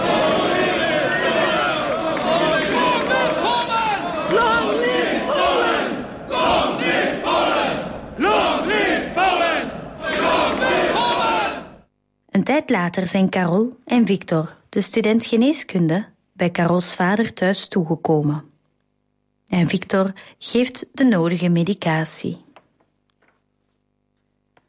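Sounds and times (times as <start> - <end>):
crowd shouting rallying cries: 0.0 - 11.8
speech: 12.7 - 18.5, 19.5 - 22.4.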